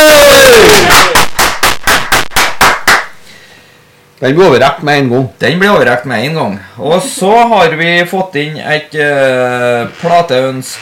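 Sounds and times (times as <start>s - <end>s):
audience clapping and cheering: 0.5s - 3.2s
speech: 4.2s - 10.7s.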